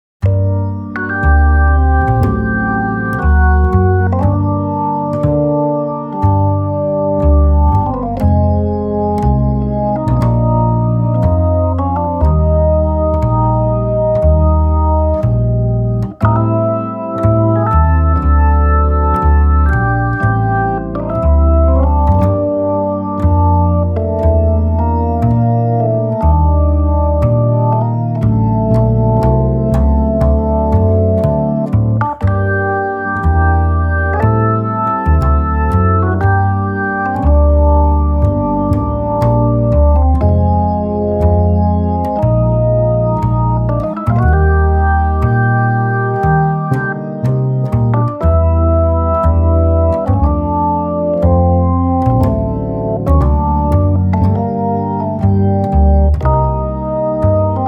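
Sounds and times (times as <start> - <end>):
blues music at 120 bpm: 0.2 - 57.6.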